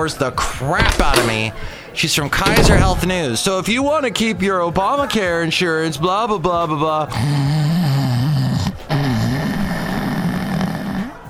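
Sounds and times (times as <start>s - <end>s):
speech: 0.0s - 7.7s
snoring: 7.1s - 11.2s.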